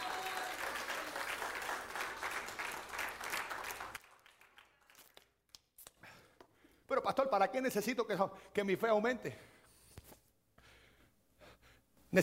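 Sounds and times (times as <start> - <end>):
audience applause: 0.0 - 5.2
speech: 7.0 - 9.5.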